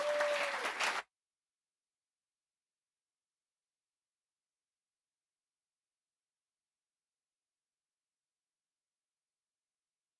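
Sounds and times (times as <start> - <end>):
audience applause: 0.0 - 1.1.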